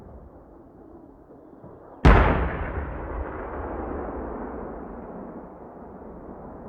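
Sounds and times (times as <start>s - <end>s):
tank cannon firing: 2.1s - 6.5s.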